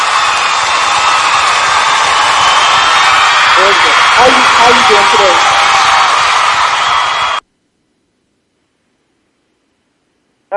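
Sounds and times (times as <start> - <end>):
canned applause sound effect: 0.0 - 7.4
speech: 4.2 - 5.6.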